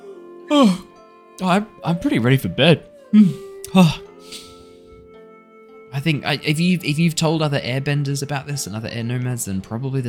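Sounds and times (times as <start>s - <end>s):
big voiced yawn: 0.5s - 0.9s, 3.1s - 4.9s
speech: 0.5s - 4.4s, 5.9s - 10.0s.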